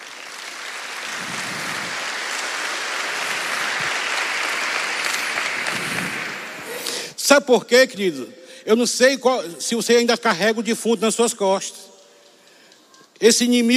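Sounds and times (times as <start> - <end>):
audience applause: 0.0 - 7.0
speech: 7.3 - 11.9, 13.2 - 13.7.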